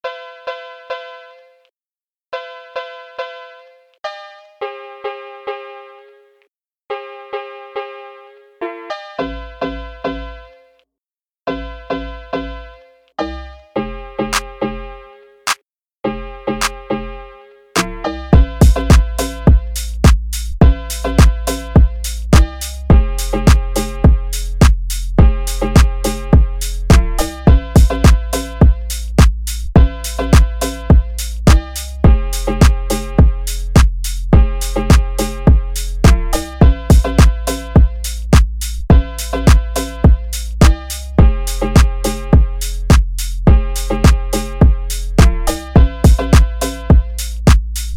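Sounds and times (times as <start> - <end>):
phonk music: 16.3 - 47.9.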